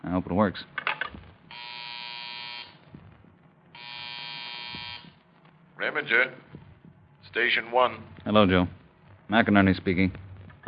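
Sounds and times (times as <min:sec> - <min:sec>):
speech: 0:00.0 - 0:00.8, 0:05.8 - 0:06.5, 0:07.4 - 0:10.6
field telephone buzzer ringing: 0:01.5 - 0:02.9, 0:03.8 - 0:05.2.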